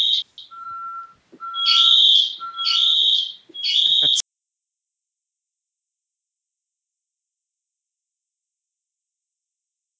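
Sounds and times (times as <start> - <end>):
home security alarm system going off: 0.0 - 4.2.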